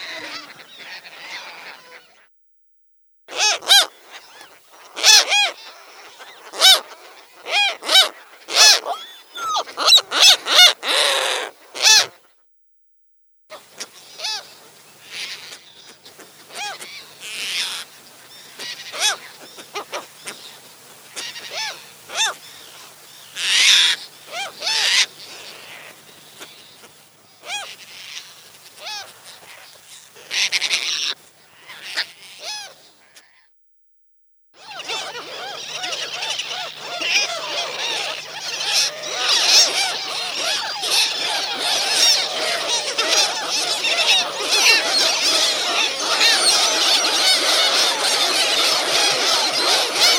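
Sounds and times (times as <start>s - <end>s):
relict gulls yelping calls: 0.0s - 2.3s, 3.3s - 12.3s, 13.5s - 33.2s, 34.6s - 50.1s.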